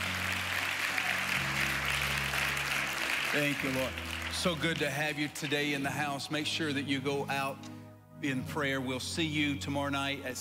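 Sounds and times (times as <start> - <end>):
audience clapping hands: 0.0 - 6.1
speech: 3.3 - 10.3.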